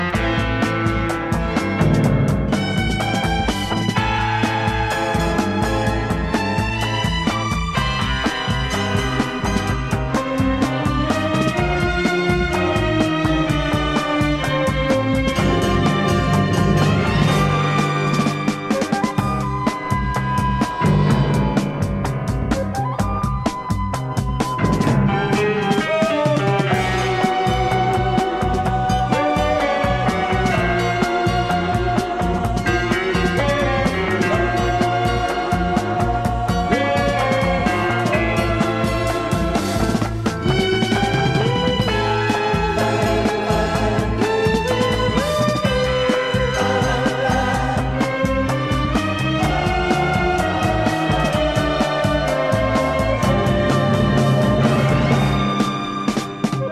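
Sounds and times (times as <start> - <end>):
psychedelic beat: 0.0 - 56.7.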